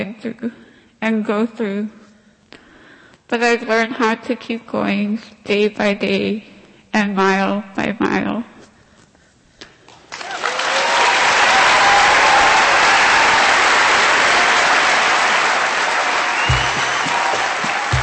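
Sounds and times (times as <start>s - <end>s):
speech: 0.0s - 2.0s, 3.3s - 8.5s
theater audience standing ovation in Anchorage at a storytelling show: 10.1s - 18.0s.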